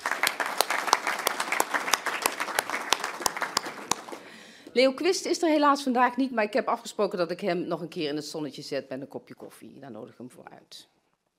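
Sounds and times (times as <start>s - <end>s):
audience applause: 0.0s - 4.5s
speech: 4.8s - 11.0s.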